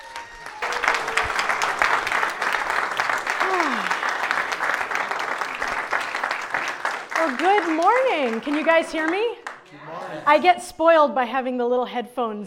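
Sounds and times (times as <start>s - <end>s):
audience clapping hands: 0.0s - 9.7s
speech: 7.4s - 9.4s, 10.2s - 12.4s.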